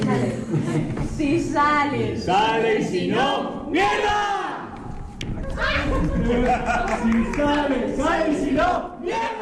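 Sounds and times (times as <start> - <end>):
laughter: 0.2 - 1.1, 5.4 - 7.9
speech: 1.6 - 4.4, 5.7 - 9.4
theatre cast shouting pre-show battle cry: 3.2 - 4.7, 8.1 - 9.4.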